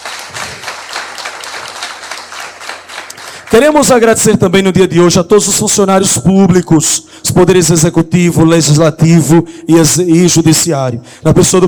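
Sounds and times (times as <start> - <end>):
round of applause: 0.0 - 3.5
speech: 3.6 - 11.6.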